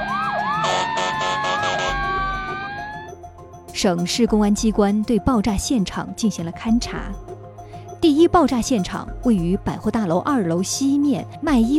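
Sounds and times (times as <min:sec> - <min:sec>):
emergency vehicle sirens: 0:00.0 - 0:03.1
steady tone: 0:00.0 - 0:03.2
speech: 0:03.8 - 0:07.3, 0:08.0 - 0:11.7.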